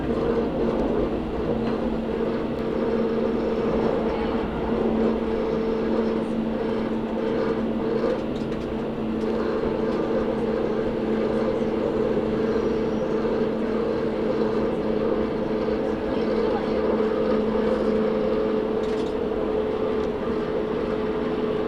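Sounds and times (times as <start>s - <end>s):
train engine drone on the Karatsu and Nagasaki Main lines: 0.0s - 21.6s.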